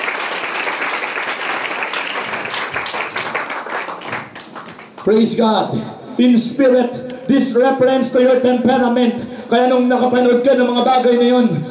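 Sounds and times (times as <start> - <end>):
church congregation applauding God during a sermon: 0.0 - 5.1
speech: 5.0 - 11.7.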